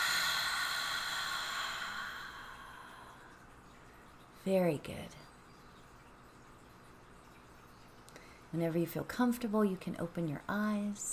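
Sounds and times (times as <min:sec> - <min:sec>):
deep breath in through the nose and out during a guided relaxation exercise: 0:00.0 - 0:03.3
speech: 0:04.4 - 0:05.3, 0:08.5 - 0:11.1.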